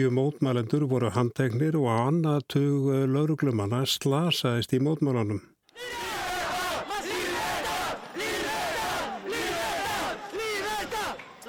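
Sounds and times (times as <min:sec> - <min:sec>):
speech: 0:00.0 - 0:06.0
crowd of protesters chanting a slogan: 0:05.7 - 0:11.4.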